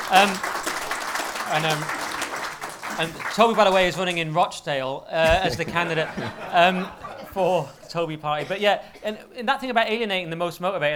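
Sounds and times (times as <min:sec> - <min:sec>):
hand clapping: 0:00.0 - 0:04.2, 0:05.2 - 0:05.8
speech: 0:00.1 - 0:00.5, 0:01.5 - 0:02.0, 0:03.0 - 0:10.9
laughter: 0:05.2 - 0:08.5.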